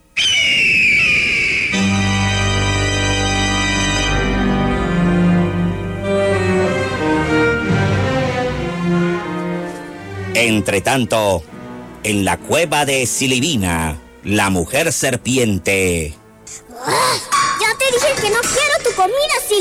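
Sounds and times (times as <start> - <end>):
large bird screaming: 0.0 - 2.1
orchestral music: 1.8 - 16.5
speech: 10.6 - 17.0, 17.9 - 19.6.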